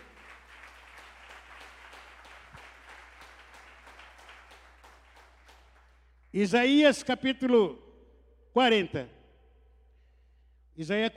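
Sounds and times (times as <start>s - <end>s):
church audience applauding: 0.0s - 6.1s
speech: 6.3s - 7.8s, 8.5s - 9.2s, 10.8s - 11.1s.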